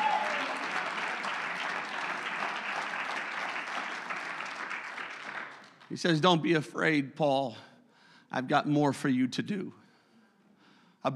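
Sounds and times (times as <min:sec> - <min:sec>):
audience clapping hands: 0:00.0 - 0:06.4
speech: 0:05.9 - 0:07.7, 0:08.3 - 0:09.8.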